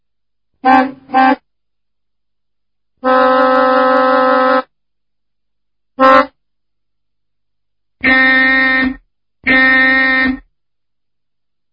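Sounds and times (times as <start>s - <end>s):
annoying car horn: 0.6s - 1.5s, 3.0s - 4.7s, 6.0s - 6.4s, 8.0s - 10.5s.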